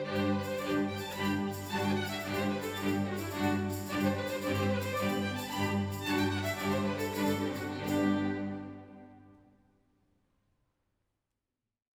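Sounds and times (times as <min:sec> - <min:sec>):
tambourin dance music: 0:00.1 - 0:08.4.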